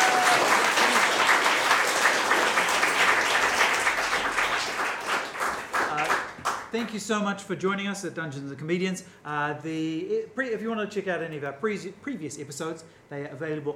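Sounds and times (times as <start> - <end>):
crowd applauding: 0.0 - 6.8
speech: 6.8 - 13.7.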